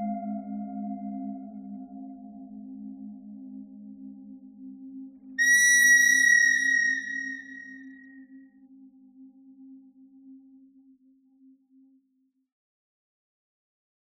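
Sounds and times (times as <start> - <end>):
pentatonic bird melody: 5.4 - 8.0.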